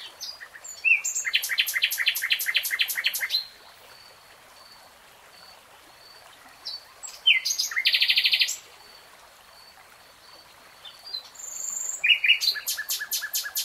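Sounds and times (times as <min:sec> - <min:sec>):
nightingale song: 0:00.0 - 0:03.5, 0:06.6 - 0:08.6, 0:10.8 - 0:13.6.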